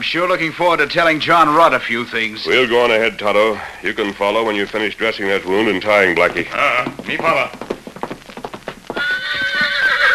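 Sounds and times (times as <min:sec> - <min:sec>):
speech: 0:00.0 - 0:07.7
horse named Victor clopping its hooves: 0:04.6 - 0:10.1
horse named Victor whinnying: 0:08.9 - 0:10.1.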